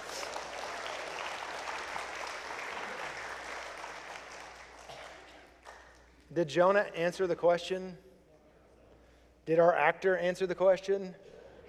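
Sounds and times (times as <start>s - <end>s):
audience clapping: 0.0s - 6.2s
speech: 6.3s - 8.1s, 9.5s - 11.3s.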